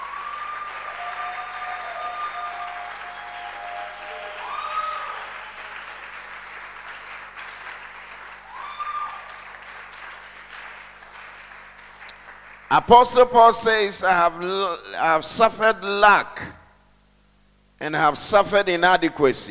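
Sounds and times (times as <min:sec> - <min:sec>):
audience clapping: 0:00.0 - 0:13.5
speech: 0:12.7 - 0:16.6, 0:17.8 - 0:19.5.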